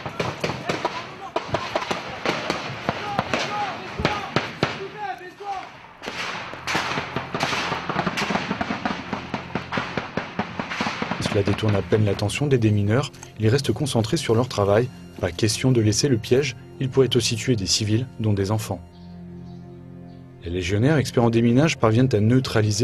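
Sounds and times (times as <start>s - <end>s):
harassing gunfire from approaching insurgents: 0.0s - 12.0s
speech: 11.4s - 19.0s, 20.4s - 22.8s.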